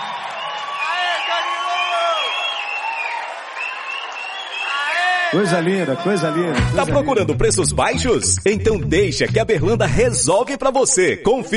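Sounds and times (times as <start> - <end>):
crowd whoops and shouts: 0.0 - 6.1
crowd applauding: 0.0 - 7.0
speech: 5.3 - 11.5.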